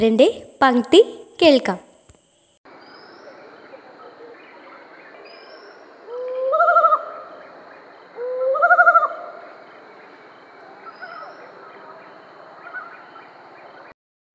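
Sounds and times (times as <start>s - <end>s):
speech: 0.0s - 1.9s
mottled wood owl calling: 2.8s - 13.3s.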